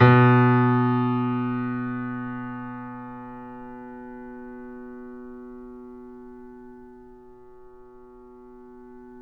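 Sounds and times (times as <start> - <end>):
grand piano note: 0.0 - 5.0.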